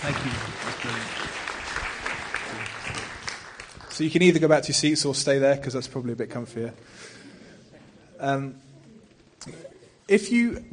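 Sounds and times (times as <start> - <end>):
speech: 0.0 - 1.4, 4.0 - 7.2, 8.2 - 8.7, 9.4 - 10.7
audience applause: 0.0 - 4.4.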